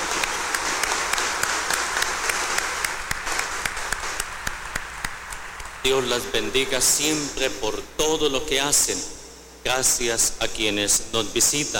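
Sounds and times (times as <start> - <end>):
audience applauding: 0.0 - 6.7
speech: 5.9 - 11.7.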